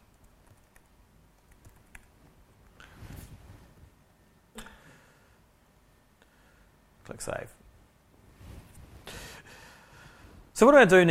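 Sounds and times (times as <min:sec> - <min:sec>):
typing on a computer keyboard: 0:00.1 - 0:02.1
speech: 0:07.2 - 0:07.6, 0:10.6 - 0:11.1.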